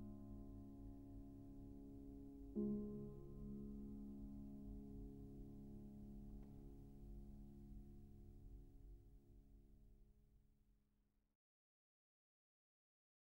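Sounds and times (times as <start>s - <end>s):
piano prelude in D flat: 0.0s - 8.6s.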